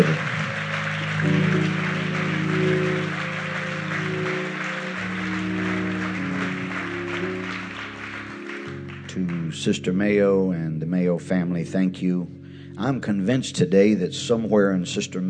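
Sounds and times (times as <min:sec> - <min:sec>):
large crowd clapping: 0:00.0 - 0:10.1
low organ-like chord: 0:00.0 - 0:15.2
speech: 0:09.5 - 0:15.2.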